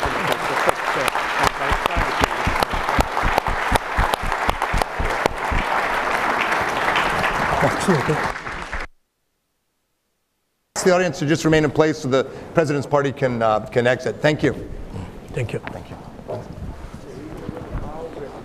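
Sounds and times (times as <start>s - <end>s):
audience applauding: 0.0s - 8.9s
speech: 7.9s - 8.3s, 10.8s - 14.8s, 15.4s - 16.0s.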